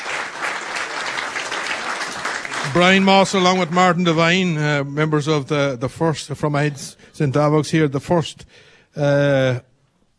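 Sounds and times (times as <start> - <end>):
audience applause for a member of the first Tyrone All-Ireland vocational schools team: 0.0 - 4.0
speech: 2.7 - 9.7.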